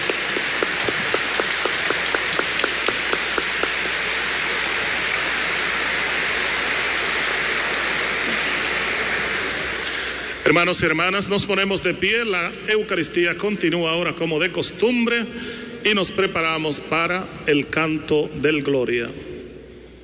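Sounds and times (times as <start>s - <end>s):
crowd applauding the new bishop: 0.0s - 10.3s
speech: 10.5s - 19.3s.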